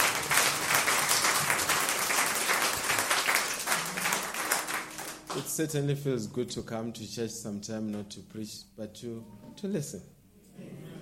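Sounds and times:
audience applause: 0:00.0 - 0:05.5
speech: 0:05.4 - 0:10.8.

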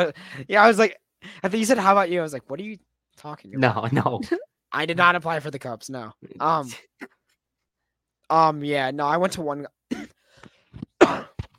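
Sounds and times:
speech: 0:00.0 - 0:07.2, 0:08.3 - 0:10.1
person coughing: 0:09.9 - 0:10.2, 0:10.9 - 0:11.5.

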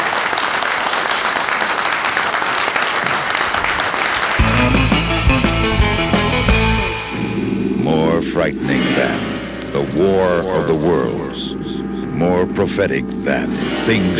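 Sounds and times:
audience at the Monster Bash convention clapping and cheering: 0:00.0 - 0:06.6
music: 0:04.4 - 0:14.1
speech: 0:08.4 - 0:11.6, 0:12.2 - 0:14.1.

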